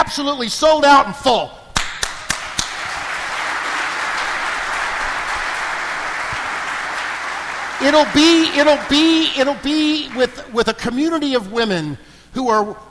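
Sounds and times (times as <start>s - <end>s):
speech: 0.1s - 1.6s, 7.8s - 12.8s
audience applause: 2.2s - 10.5s.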